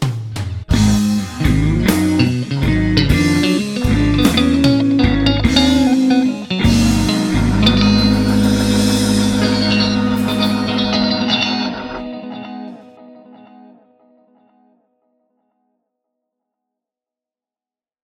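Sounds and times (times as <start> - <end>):
Fender Squier USB electric guitar: 0.7 - 14.9.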